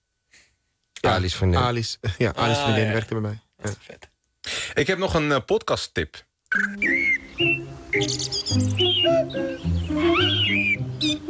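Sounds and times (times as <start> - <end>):
speech: 1.0 - 4.1, 4.8 - 11.2
finches chirping: 6.5 - 11.2.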